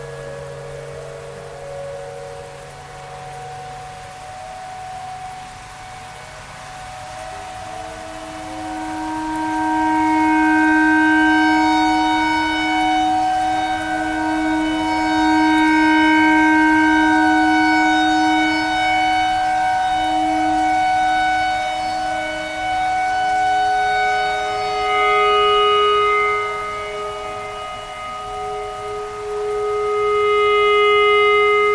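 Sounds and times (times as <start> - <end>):
clarinet playing pentatonic phrases: 6.4 - 31.7.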